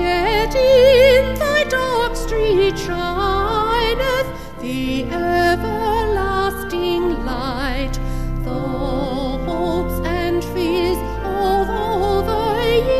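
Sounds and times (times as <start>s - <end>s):
vocal organ: 0.0s - 12.9s.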